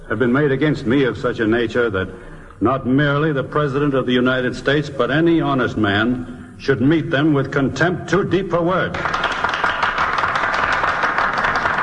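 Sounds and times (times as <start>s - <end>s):
speech: 0.1s - 9.3s
senators applauding: 8.9s - 11.8s.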